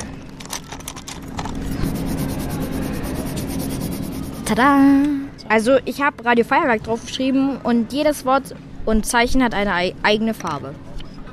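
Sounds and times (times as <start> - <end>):
faint steady hum: 1.1 - 5.5
pen or marker scribbling on a paper button: 1.6 - 4.8
speech: 4.5 - 10.8.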